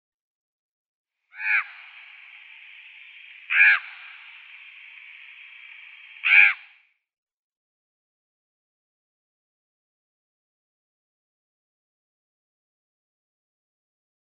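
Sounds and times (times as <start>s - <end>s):
common raven giving varied calls: 1.3s - 6.9s.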